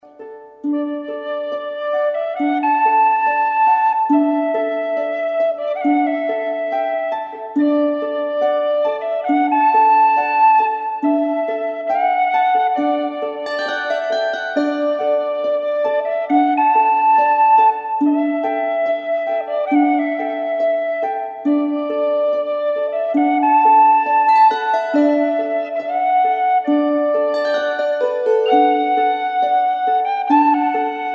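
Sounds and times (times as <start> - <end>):
Celtic music: 0.0 - 31.1.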